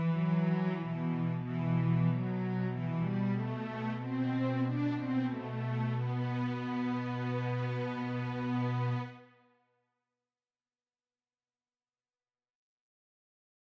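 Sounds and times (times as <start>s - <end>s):
cello solo: 0.0s - 9.2s.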